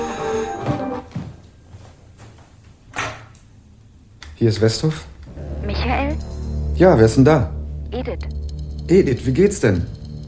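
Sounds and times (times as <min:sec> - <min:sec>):
faint theme music of a television program: 0:00.0 - 0:01.1, 0:05.3 - 0:10.2
speech: 0:04.4 - 0:05.1, 0:05.8 - 0:10.0.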